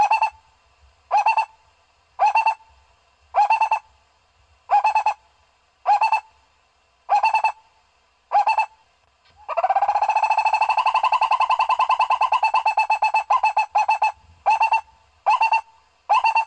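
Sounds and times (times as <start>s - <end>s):
owl hooting: 0.0s - 0.5s, 1.1s - 1.6s, 2.2s - 3.9s, 4.7s - 5.2s, 5.8s - 6.4s, 7.1s - 7.7s, 8.3s - 8.8s, 9.4s - 16.4s.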